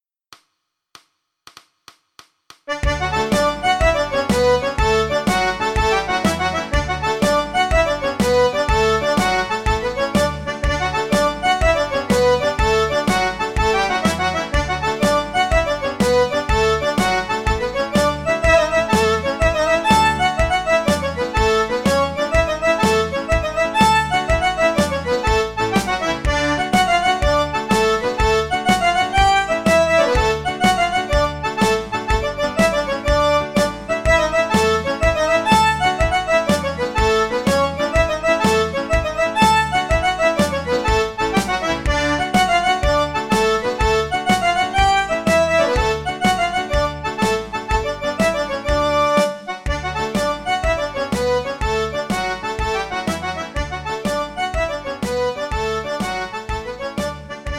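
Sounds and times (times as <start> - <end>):
traditional Irish polka medley in D: 2.7 - 57.5.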